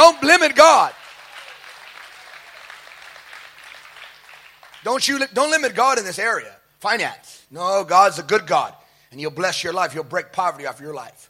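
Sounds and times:
crowd clapping: 0:00.0 - 0:05.3
speech: 0:04.8 - 0:11.2.

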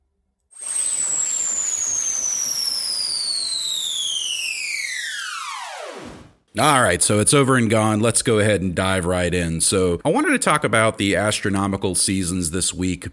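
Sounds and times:
sci-fi electronic alarm disarming synthetic tone sweeping downward: 0:00.5 - 0:06.4
hissy noise bed: 0:00.6 - 0:06.0
speech: 0:06.6 - 0:13.1.

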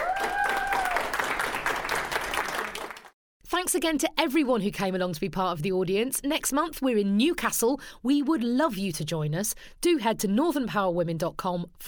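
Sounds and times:
audience applause: 0:00.0 - 0:03.2
speech: 0:03.6 - 0:11.8.

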